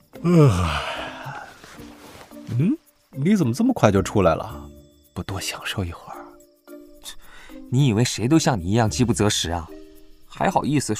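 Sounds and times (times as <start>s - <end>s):
speech: 0.2s - 0.9s, 2.6s - 6.1s, 7.0s - 10.9s
loud yawning while stretching: 0.2s - 1.6s.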